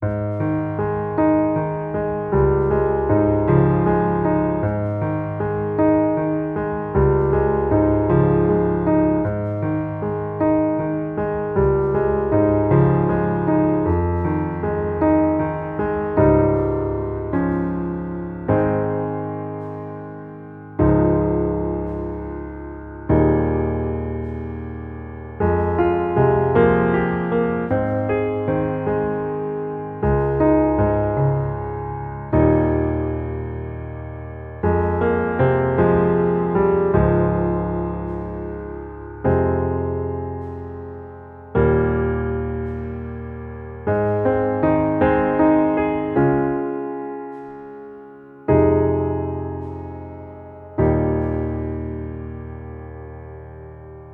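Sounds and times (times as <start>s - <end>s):
piano underscore: 0.0s - 54.1s.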